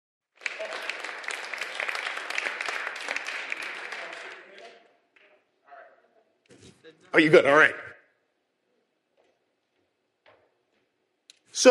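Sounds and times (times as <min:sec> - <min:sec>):
round of applause: 0:00.2 - 0:05.4
speech: 0:07.1 - 0:07.8.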